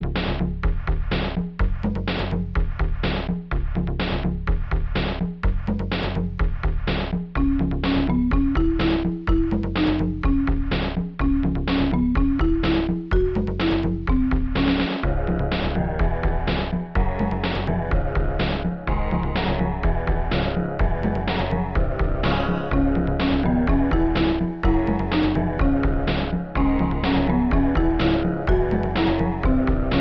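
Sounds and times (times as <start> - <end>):
bongo drums: 0.0 - 29.9.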